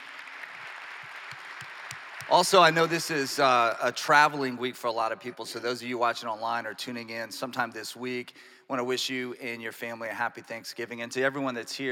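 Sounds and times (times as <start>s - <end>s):
audience applause: 0.0s - 3.8s
speech: 2.3s - 11.8s.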